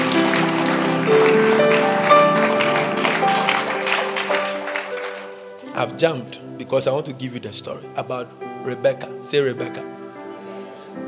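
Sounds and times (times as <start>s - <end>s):
audience clapping hands: 0.0s - 5.8s
speech: 5.8s - 10.0s.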